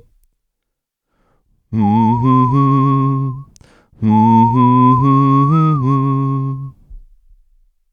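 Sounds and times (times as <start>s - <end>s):
whistle through Zoom V6 vocal processor: 1.7s - 6.8s.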